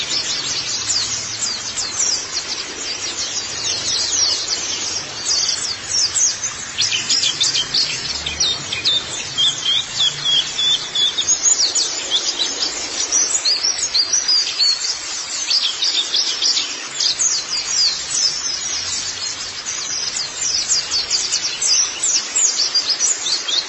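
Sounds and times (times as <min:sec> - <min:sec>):
faint background hiss: 0:00.0 - 0:23.6
white-eye twittering: 0:00.0 - 0:23.6.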